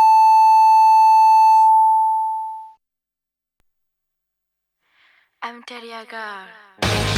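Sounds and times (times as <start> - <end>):
electronic time signal tone marking ten o'clock on a Japanese radio station: 0.0 - 2.8.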